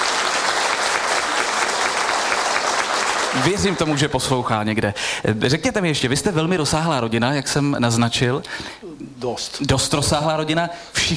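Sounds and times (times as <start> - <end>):
audience applause: 0.0 - 4.5
speech: 3.3 - 11.1.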